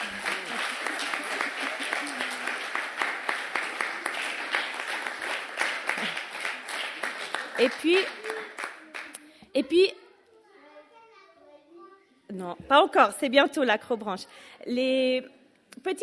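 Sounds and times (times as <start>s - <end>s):
audience applause: 0.0s - 9.2s
speech: 7.6s - 8.2s, 9.6s - 10.0s, 12.4s - 16.0s.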